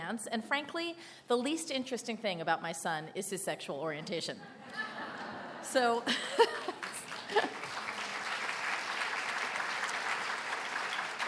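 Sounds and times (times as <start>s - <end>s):
speech: 0.1s - 7.6s
laughter: 4.4s - 8.1s
audience clapping: 6.4s - 11.2s.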